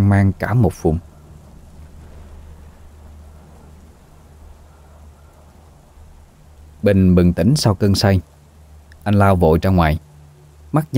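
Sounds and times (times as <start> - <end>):
rain: 0.0 - 10.9
speech: 0.1 - 1.1, 6.8 - 8.3, 9.0 - 10.1, 10.7 - 10.9
loud rolling thunder: 0.9 - 7.4.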